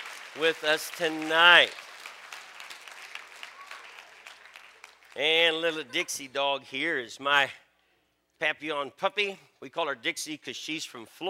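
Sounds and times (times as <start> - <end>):
audience applause: 0.0 - 6.1
speech: 0.4 - 1.8, 5.2 - 7.6, 8.4 - 11.2.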